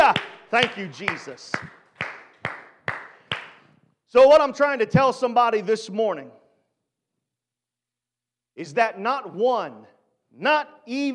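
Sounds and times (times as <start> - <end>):
audience clapping hands: 0.0 - 3.6
speech: 0.5 - 1.8, 4.1 - 6.4, 8.6 - 11.1.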